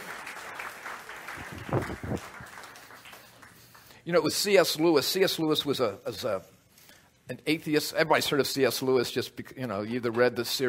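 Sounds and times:
crowd applauding: 0.0 - 4.0
speech: 1.7 - 2.6, 4.0 - 6.5, 7.3 - 10.6.

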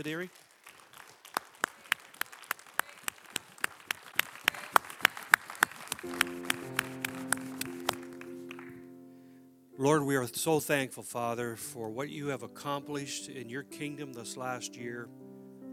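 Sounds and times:
speech: 0.0 - 0.5, 9.8 - 15.2
audience clapping: 0.0 - 8.9
held musical tones: 6.0 - 15.7.

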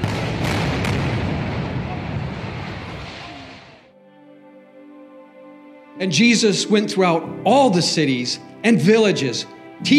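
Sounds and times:
artillery guns firing toward the Cambodian border: 0.0 - 2.0
speech: 6.0 - 9.9.

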